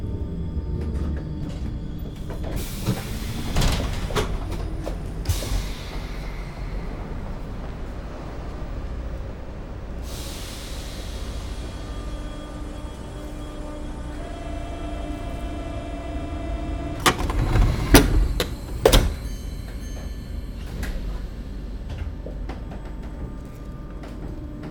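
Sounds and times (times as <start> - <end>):
RER metro train arriving in Paris: 0.0 - 24.6.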